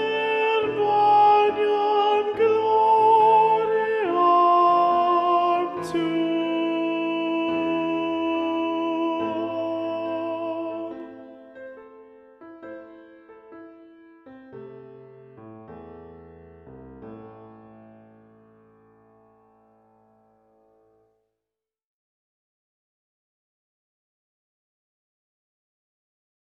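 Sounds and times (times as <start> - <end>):
soprano singing: 0.0 - 11.6.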